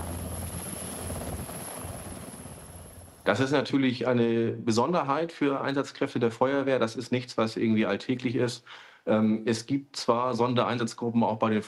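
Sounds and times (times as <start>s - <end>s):
Bundeswehr military helicopter flying: 0.0s - 3.5s
speech: 3.3s - 11.6s.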